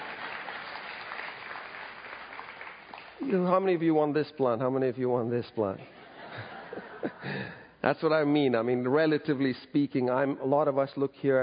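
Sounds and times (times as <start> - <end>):
audience applause: 0.0 - 3.6
speech: 3.2 - 6.0, 7.8 - 11.4
laughter: 5.9 - 7.7.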